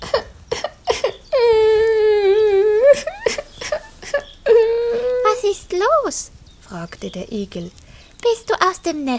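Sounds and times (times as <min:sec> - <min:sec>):
sobbing bursts: 0:00.0 - 0:05.6
voice imitating a little owl wailing loudly: 0:01.2 - 0:05.6
speech: 0:06.1 - 0:09.1.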